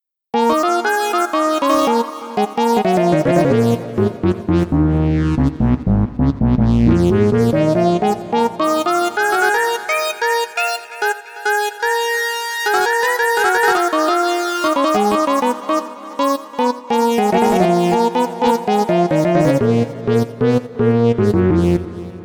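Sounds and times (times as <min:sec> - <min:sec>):
sawtooth synth eighth-note sequence: 0:00.4 - 0:22.2.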